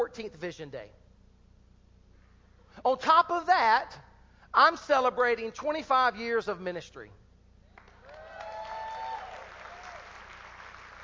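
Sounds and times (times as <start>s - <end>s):
speech: 0.0s - 1.0s, 2.8s - 7.2s
audience applause: 7.8s - 11.0s
cheers: 8.0s - 11.0s.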